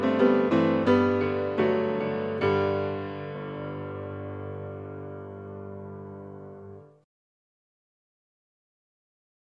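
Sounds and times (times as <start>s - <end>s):
solo piano carol: 0.0s - 7.0s.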